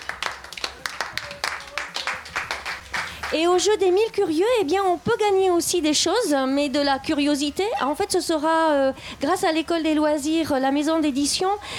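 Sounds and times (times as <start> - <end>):
audience applauding participants: 0.0 - 3.4
speech: 3.3 - 11.7.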